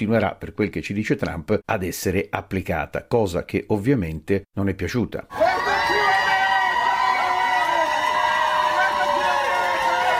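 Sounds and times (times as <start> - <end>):
speech: 0.0 - 5.7
crowd in Dallas cheering and shouting in welcome to released immigrants: 5.3 - 10.1.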